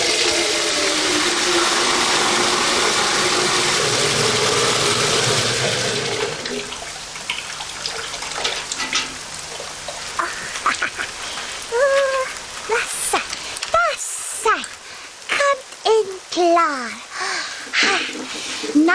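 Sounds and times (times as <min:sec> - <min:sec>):
rain pattering: 0:00.0 - 0:18.9
person vocalizing: 0:10.2 - 0:13.3, 0:17.2 - 0:18.3.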